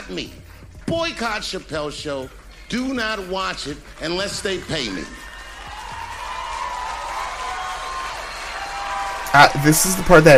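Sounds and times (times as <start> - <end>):
speech: 0.1 - 5.3, 9.3 - 10.3
crowd applause: 2.8 - 10.3
crowd shouting and whooping: 4.4 - 10.3.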